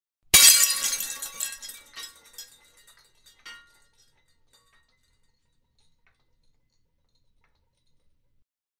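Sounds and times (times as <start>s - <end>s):
mug breaking: 0.4s - 6.3s.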